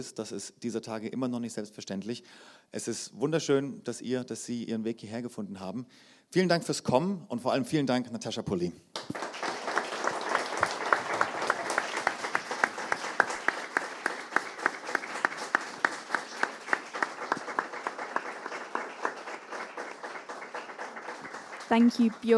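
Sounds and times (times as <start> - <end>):
speech: 0.0 - 9.2, 21.8 - 22.3
audience applause: 8.9 - 22.3.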